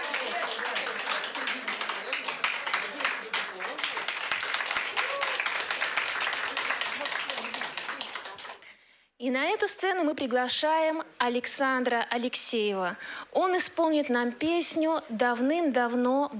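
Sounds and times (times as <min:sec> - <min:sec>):
audience applause: 0:00.0 - 0:08.6
speech: 0:09.2 - 0:16.3.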